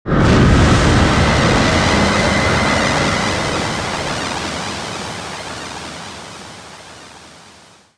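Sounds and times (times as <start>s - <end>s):
magic cloud: 0.4s - 5.6s.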